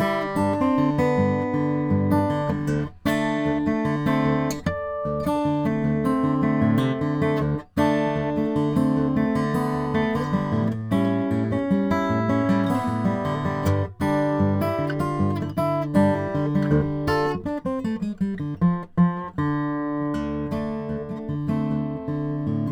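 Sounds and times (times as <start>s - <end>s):
Brazilian rosewood acoustic guitar: 0.0s - 22.7s.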